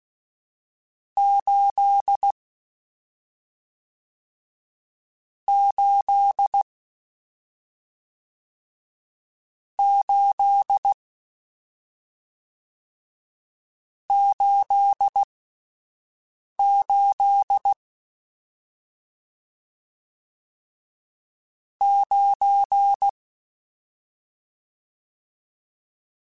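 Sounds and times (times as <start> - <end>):
Morse code CW code groups: 1.2 - 2.3, 5.5 - 6.6, 9.8 - 11.0, 14.1 - 15.3, 16.6 - 17.8, 21.8 - 23.1.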